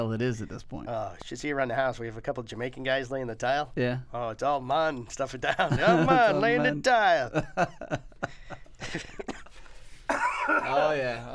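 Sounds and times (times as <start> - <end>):
speech: 0.0 - 8.3, 8.9 - 9.2, 10.9 - 11.3
laughter: 5.4 - 11.3
person coughing: 9.0 - 10.9.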